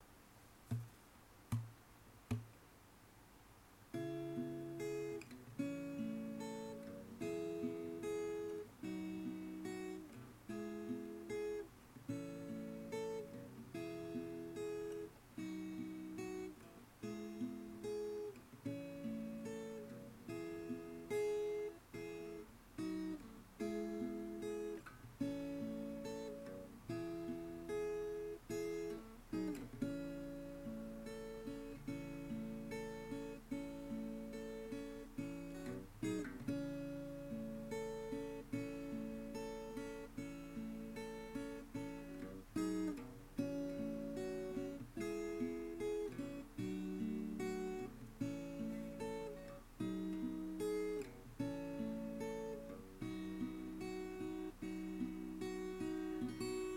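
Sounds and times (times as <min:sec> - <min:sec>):
acoustic guitar accompaniment: 0:00.0 - 0:56.7.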